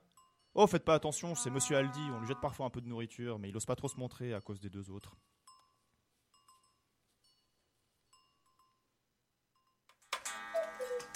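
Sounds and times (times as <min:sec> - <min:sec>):
speech: 0:00.6 - 0:05.4
cuckoo clock chiming the hour: 0:10.2 - 0:11.1.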